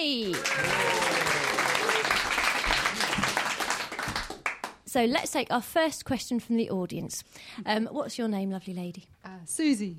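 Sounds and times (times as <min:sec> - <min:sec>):
audience applause: 0:00.2 - 0:04.8
speech: 0:05.0 - 0:09.9.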